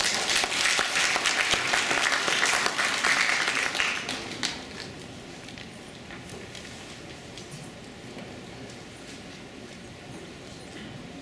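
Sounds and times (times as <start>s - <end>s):
audience applause welcoming a guest speaker: 0.0s - 4.9s.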